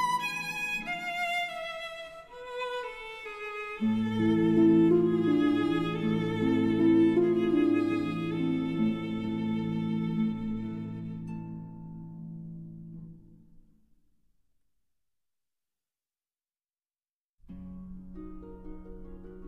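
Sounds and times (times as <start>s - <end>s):
berceuse for violin and harp: 0.0s - 12.2s.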